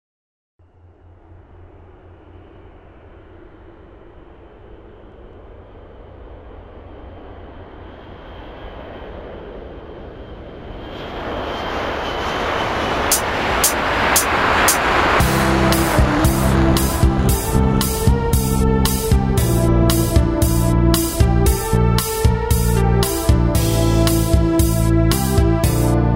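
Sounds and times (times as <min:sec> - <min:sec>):
jet sound with melody: 0:11.5 - 0:26.1.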